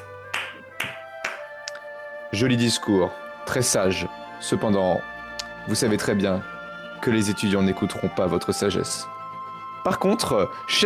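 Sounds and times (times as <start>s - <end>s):
person clapping: 0.0s - 1.9s
speech: 2.3s - 9.2s, 9.8s - 10.8s.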